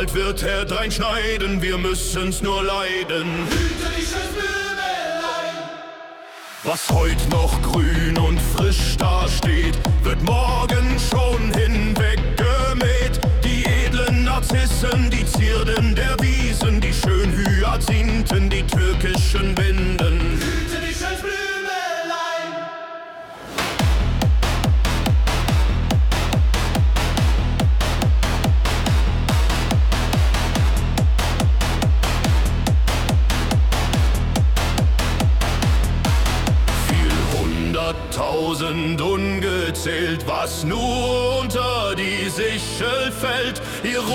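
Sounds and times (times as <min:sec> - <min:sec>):
techno music: 0:00.1 - 0:21.9, 0:23.2 - 0:44.1.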